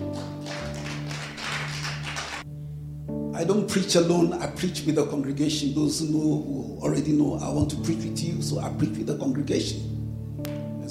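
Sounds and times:
audience clapping: 0.0 - 2.5
speech: 3.4 - 10.0.

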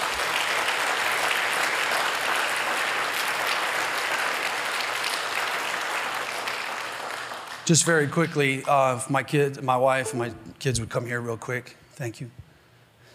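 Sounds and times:
round of applause: 0.0 - 8.4
speech: 7.7 - 12.4.

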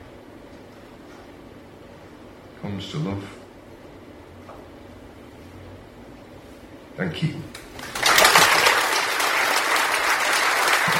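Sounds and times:
speech: 2.6 - 3.4, 7.0 - 7.6
audience applause: 7.8 - 10.9.

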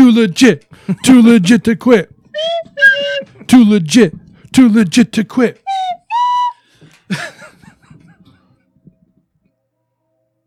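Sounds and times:
speech: 0.1 - 2.8, 3.5 - 5.6, 7.1 - 7.3
train whistle: 5.7 - 6.7
laughter: 7.1 - 8.4.

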